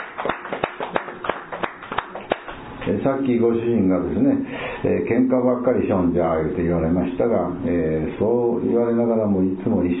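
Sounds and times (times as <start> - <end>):
small group applauding a couple's 59th wedding anniversary: 0.0 - 2.9
speech: 2.9 - 9.9.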